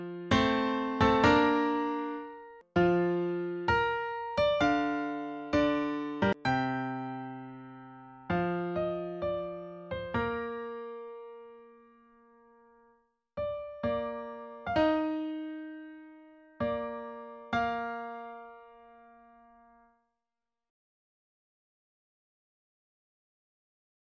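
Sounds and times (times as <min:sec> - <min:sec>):
music piece: 0:00.0 - 0:12.8, 0:13.4 - 0:19.8.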